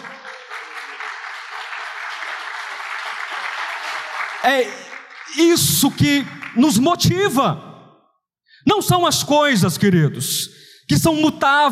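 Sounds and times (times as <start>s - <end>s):
audience applauding: 0.0s - 7.1s
speech: 4.4s - 7.7s, 8.6s - 11.6s.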